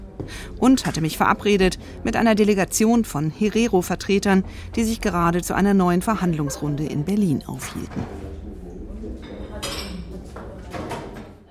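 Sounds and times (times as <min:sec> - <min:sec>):
murmur of conversation: 0:00.0 - 0:11.4
speech: 0:00.2 - 0:08.3
cutlery and dishes clinking during a meal: 0:09.1 - 0:11.4.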